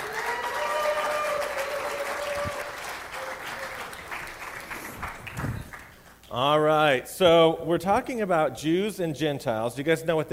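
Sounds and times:
audience applause: 0:00.0 - 0:06.4
speech: 0:06.4 - 0:10.3.

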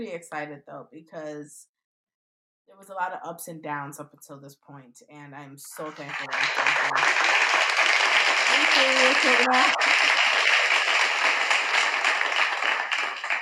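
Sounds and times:
speech: 0:00.0 - 0:01.8, 0:02.7 - 0:07.3, 0:08.8 - 0:10.1
recorded audience clap sound effect: 0:05.7 - 0:13.4.

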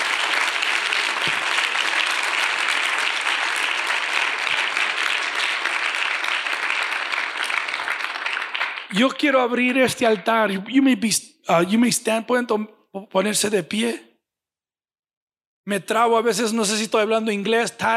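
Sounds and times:
audience giving loud applause: 0:00.0 - 0:09.4
speech: 0:08.9 - 0:14.1, 0:15.7 - 0:17.9.

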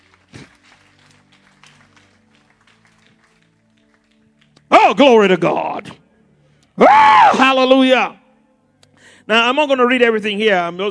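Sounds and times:
audience clapping: 0:00.0 - 0:04.9
speech: 0:04.9 - 0:06.0, 0:06.8 - 0:08.2, 0:09.3 - 0:10.8.

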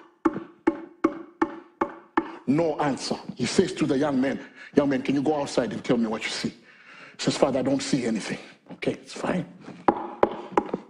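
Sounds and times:
knocking: 0:00.0 - 0:02.4, 0:09.9 - 0:10.8
speech: 0:02.5 - 0:06.6, 0:07.2 - 0:09.8.

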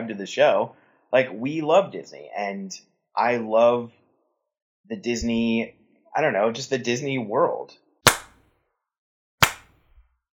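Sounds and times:
speech: 0:00.0 - 0:04.0, 0:04.9 - 0:07.8
slow clapping: 0:09.4 - 0:09.8.

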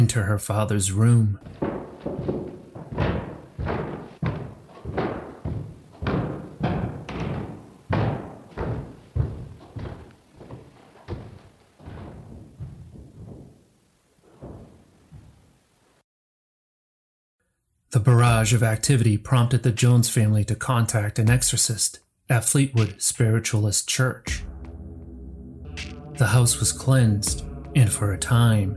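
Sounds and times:
speech: 0:00.0 - 0:03.1, 0:18.0 - 0:24.5, 0:26.2 - 0:28.7
heavy footsteps climbing a staircase: 0:01.4 - 0:15.8, 0:25.8 - 0:28.5.

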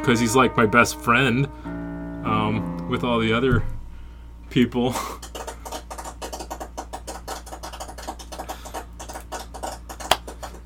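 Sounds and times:
speech: 0:00.0 - 0:03.8, 0:04.5 - 0:05.3
small group clapping: 0:05.0 - 0:10.6.

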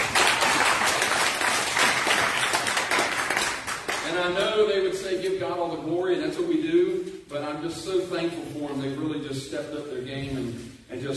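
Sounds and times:
audience applauding the choir: 0:00.0 - 0:04.1
speech: 0:04.3 - 0:11.1.

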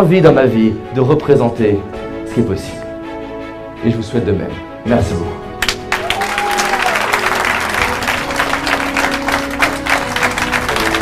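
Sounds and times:
speech: 0:00.0 - 0:02.8, 0:03.8 - 0:05.4
large crowd clapping: 0:05.6 - 0:11.0.

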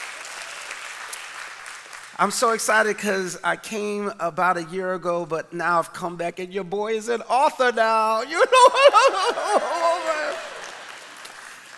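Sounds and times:
audience applause: 0:00.0 - 0:02.2, 0:09.3 - 0:11.7
speech: 0:02.2 - 0:10.0
laughter: 0:08.3 - 0:11.6.

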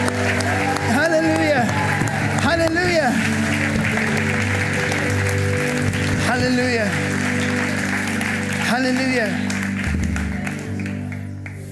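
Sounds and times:
audience shouting: 0:00.0 - 0:03.4
audience clapping: 0:00.0 - 0:11.6
speech: 0:08.9 - 0:09.5.

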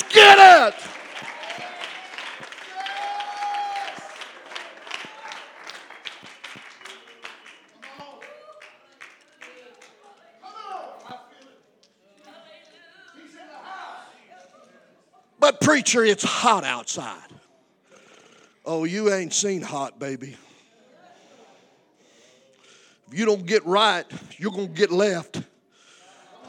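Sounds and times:
audience clapping: 0:00.0 - 0:10.3
speech: 0:00.6 - 0:00.9, 0:15.6 - 0:17.3, 0:18.7 - 0:20.4, 0:23.2 - 0:25.4.

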